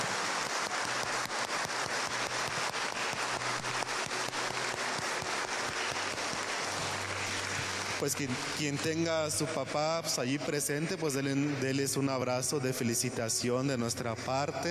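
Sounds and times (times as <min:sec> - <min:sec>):
audience applause: 0:00.0 - 0:09.9
speech: 0:08.0 - 0:14.7.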